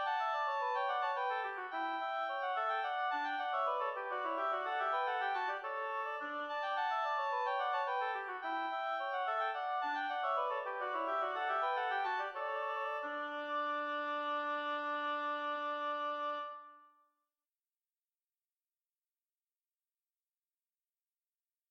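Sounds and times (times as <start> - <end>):
oboe fugue in D major: 0.0 - 16.9.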